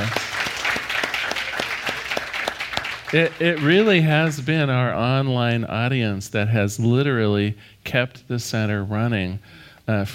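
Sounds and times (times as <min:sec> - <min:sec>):
crowd applauding: 0:00.0 - 0:04.8
speech: 0:03.1 - 0:10.1.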